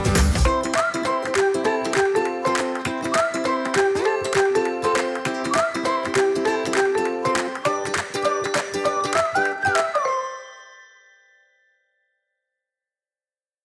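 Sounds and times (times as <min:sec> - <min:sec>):
upbeat intro music: 0:00.0 - 0:10.6.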